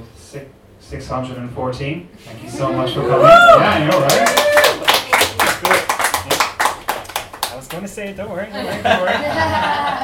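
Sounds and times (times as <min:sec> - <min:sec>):
speech: 0:00.3 - 0:04.6, 0:07.6 - 0:10.0
audience applause at the close of an event: 0:03.6 - 0:07.8
laughter: 0:08.5 - 0:10.0.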